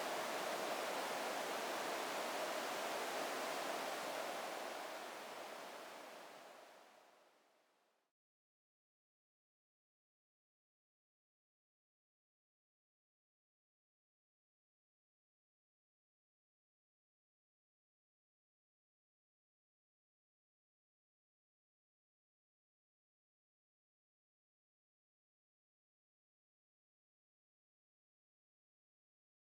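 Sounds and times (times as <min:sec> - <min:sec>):
wind: 0:00.0 - 0:07.0.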